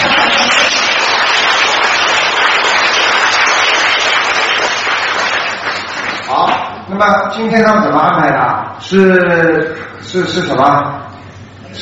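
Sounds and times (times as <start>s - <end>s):
audience applause: 0.0s - 6.4s
speech: 7.0s - 11.0s.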